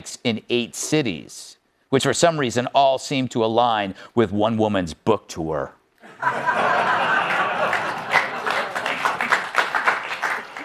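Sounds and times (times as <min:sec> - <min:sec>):
speech: 0:00.0 - 0:07.1
laughter: 0:06.0 - 0:10.6
polite applause: 0:07.0 - 0:10.6.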